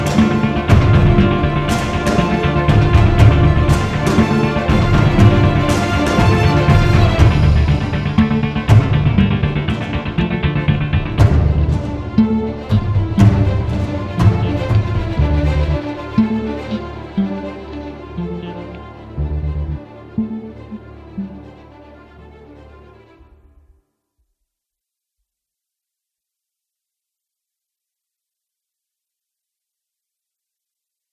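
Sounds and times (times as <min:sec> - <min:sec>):
credits music: 0:00.0 - 0:22.0.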